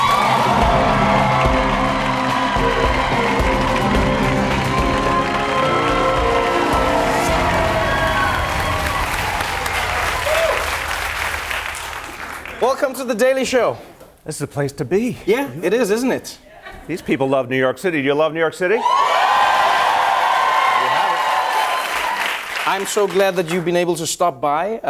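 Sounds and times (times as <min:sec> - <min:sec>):
studio audience whoops and shouts: 0:00.0 - 0:03.2, 0:04.4 - 0:10.8, 0:18.8 - 0:22.4
studio audience applause and cheering for the mayor of New York City: 0:00.0 - 0:12.7, 0:18.8 - 0:23.6
speech: 0:13.0 - 0:19.0, 0:22.7 - 0:24.8.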